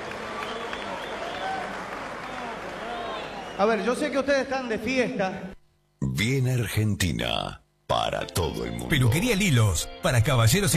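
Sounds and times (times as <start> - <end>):
audience applause: 0.0 - 3.8
speech: 3.6 - 10.7.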